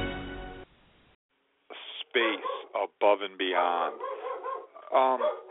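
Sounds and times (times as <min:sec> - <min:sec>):
dog barking excitedly: 0:02.2 - 0:02.8, 0:03.8 - 0:05.5
speech: 0:04.9 - 0:05.5.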